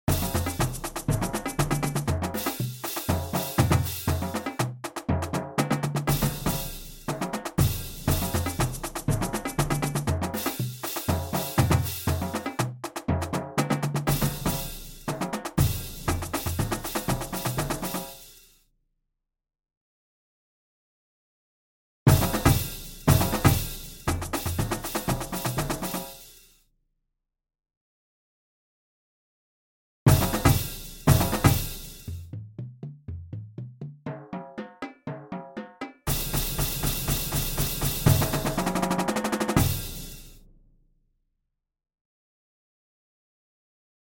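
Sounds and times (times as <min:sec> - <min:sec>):
disco drums: 0:00.0 - 0:18.4, 0:22.1 - 0:26.5, 0:30.1 - 0:40.5.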